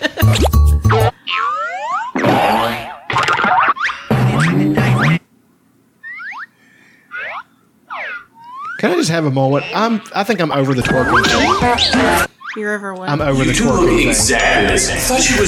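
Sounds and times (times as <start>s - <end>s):
cartoon balloon boing sound effects: 0.3s - 5.3s, 6.0s - 6.5s, 7.1s - 9.0s, 10.8s - 12.8s
speech: 8.8s - 15.4s.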